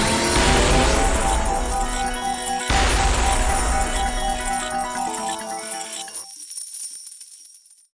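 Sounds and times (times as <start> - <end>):
big win jingle: 0.2 - 7.9.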